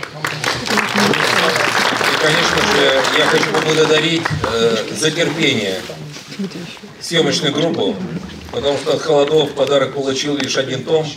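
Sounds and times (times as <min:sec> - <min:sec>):
audience applause: 0:00.0 - 0:04.9
speech: 0:02.2 - 0:11.1.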